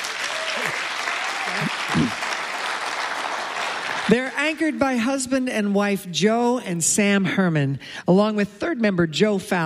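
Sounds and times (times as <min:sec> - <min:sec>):
audience applause: 0:00.0 - 0:04.4
speech: 0:04.1 - 0:09.6.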